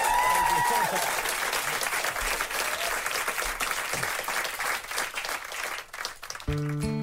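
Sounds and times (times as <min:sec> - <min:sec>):
crowd audience applause: 0:00.0 - 0:06.9.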